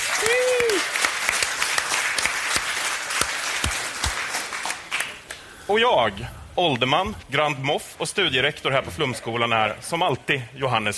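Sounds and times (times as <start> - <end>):
audience applause: 0.0 - 5.4
speech: 5.7 - 10.9.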